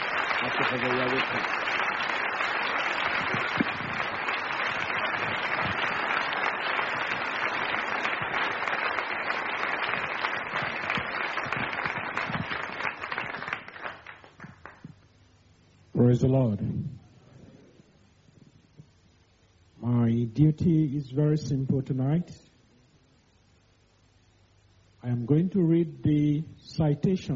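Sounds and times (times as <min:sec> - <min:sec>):
audience applause at an awards ceremony: 0:00.0 - 0:14.8
speech: 0:00.4 - 0:01.8, 0:16.1 - 0:16.9, 0:20.4 - 0:22.4, 0:25.3 - 0:27.3.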